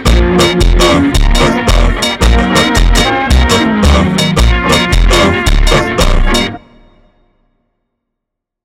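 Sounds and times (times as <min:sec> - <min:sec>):
super slowed funk music: 0:00.0 - 0:06.8.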